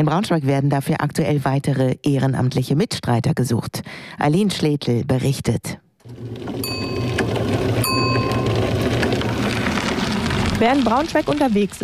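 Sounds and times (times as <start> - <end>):
speech: 0.0 - 6.6, 10.6 - 11.8
electric rickshaw motor whirring: 6.0 - 11.0
bicycle-style bell ringing on an electric rickshaw: 6.6 - 9.0.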